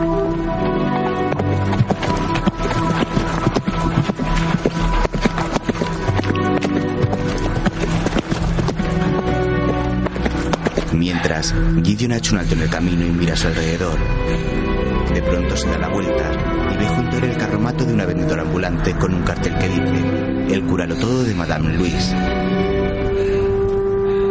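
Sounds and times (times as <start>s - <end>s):
sustained tonal backdrop: 0.0s - 24.2s
horse hooves trotting: 0.6s - 11.3s
speech: 11.4s - 14.6s, 15.2s - 22.4s.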